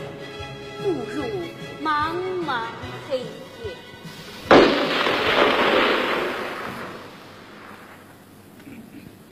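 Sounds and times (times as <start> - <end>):
speech: 0.8 - 3.8
burst of gunfire in darkness: 4.4 - 8.1.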